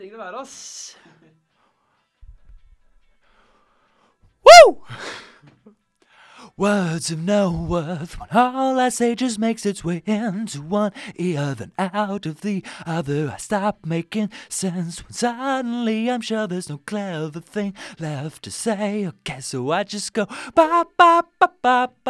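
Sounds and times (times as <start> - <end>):
vocals: 0.0 - 1.5, 6.2 - 22.0.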